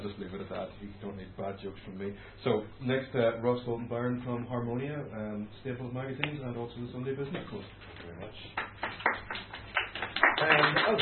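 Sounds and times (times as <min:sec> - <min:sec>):
speech: 0:00.0 - 0:09.2, 0:10.4 - 0:10.9
audience round of applause: 0:08.7 - 0:10.9.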